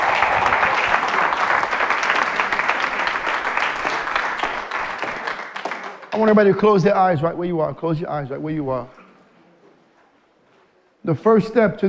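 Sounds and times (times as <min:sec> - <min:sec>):
crowd applauding: 0:00.0 - 0:06.8
speech: 0:06.2 - 0:09.0, 0:11.1 - 0:11.8.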